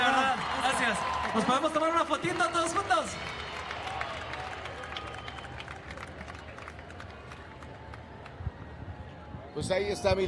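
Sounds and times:
audience applause: 0.0 - 8.4
speech: 0.9 - 3.4, 9.6 - 10.2.

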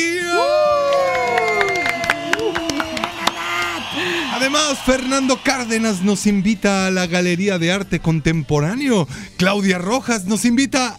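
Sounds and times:
audience applause and cheering: 0.4 - 7.3
speech: 4.6 - 10.9.

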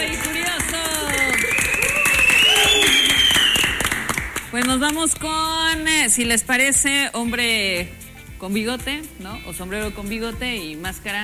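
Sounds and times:
audience applause: 0.0 - 4.9
whistle-like tones: 1.1 - 3.9
speech: 4.6 - 11.2.

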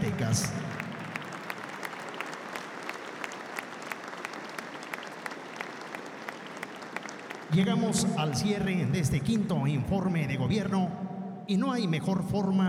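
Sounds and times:
audience applause: 0.0 - 8.2
speech: 0.2 - 0.8, 7.5 - 12.6.

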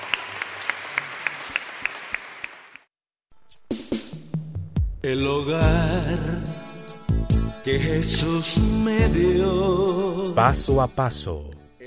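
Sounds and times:
audience applause: 0.0 - 2.9
speech: 5.0 - 6.6, 7.7 - 11.6.

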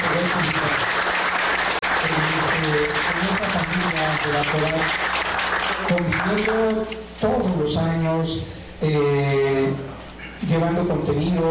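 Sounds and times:
audience applause: 0.0 - 6.5
speech: 4.1 - 5.1, 5.8 - 11.4.

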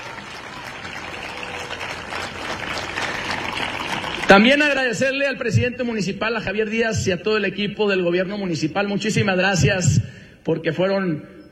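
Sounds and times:
crowd applauding: 0.0 - 5.4
speech: 4.3 - 11.5.

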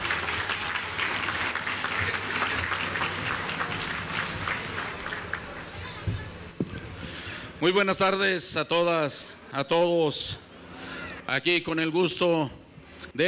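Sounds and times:
audience applause: 0.0 - 6.4
speech: 7.6 - 10.4, 11.3 - 12.6.

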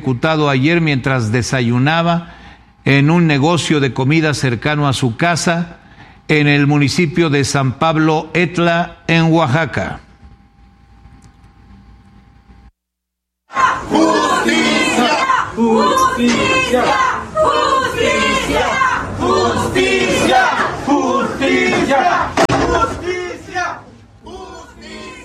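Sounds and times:
speech: 0.0 - 10.0, 15.6 - 17.6, 18.5 - 23.2
crowd chanting demands for justice: 13.5 - 25.2.

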